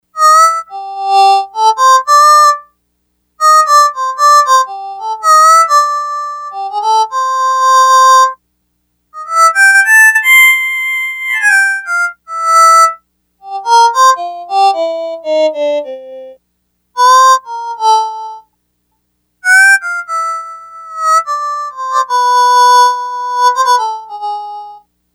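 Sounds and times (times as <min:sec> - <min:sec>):
Yamaha DX100 harmonica patch: 0:00.2 - 0:02.7, 0:03.4 - 0:08.4, 0:09.2 - 0:16.4, 0:17.0 - 0:18.4, 0:19.4 - 0:24.8.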